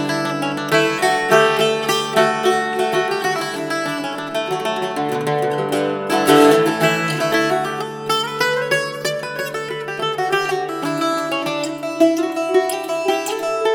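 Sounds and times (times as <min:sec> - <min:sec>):
bouzouki playing: 0:00.0 - 0:13.7.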